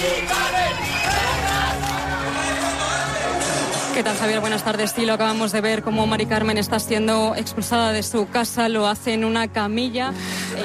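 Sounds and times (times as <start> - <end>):
large crowd of people at live scene: 0.0 - 6.2
speech: 4.0 - 10.6.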